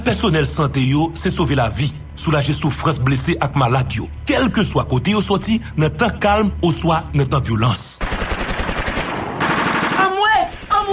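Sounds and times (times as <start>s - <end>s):
speech: 0.0s - 8.2s
machine gun fire during a violent clash: 8.0s - 10.9s.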